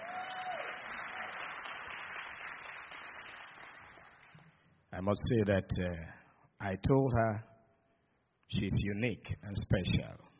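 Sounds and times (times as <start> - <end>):
audience applause: 0.0 - 4.4
speech: 4.9 - 7.5, 8.5 - 10.2.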